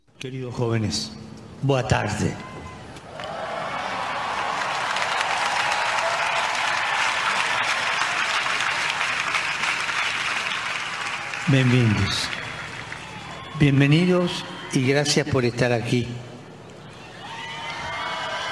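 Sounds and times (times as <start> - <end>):
speech: 0.2 - 2.5, 11.5 - 12.4, 13.6 - 16.3
crowd applause: 3.0 - 14.9, 17.0 - 18.5.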